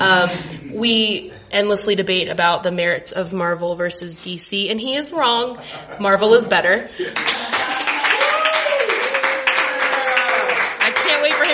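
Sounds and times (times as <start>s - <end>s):
speech: 0.1s - 7.6s
crowd applause: 7.1s - 11.5s
person whooping: 7.4s - 10.6s.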